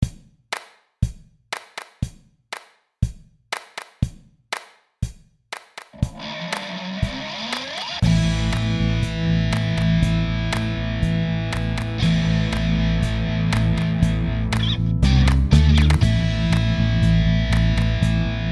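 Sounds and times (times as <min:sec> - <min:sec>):
disco music: 0:05.9 - 0:18.5.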